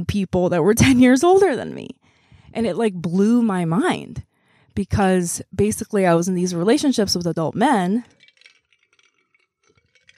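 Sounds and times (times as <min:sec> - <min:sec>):
speech: 0:00.0 - 0:08.2
ice rattling in a glass of water: 0:08.0 - 0:10.1.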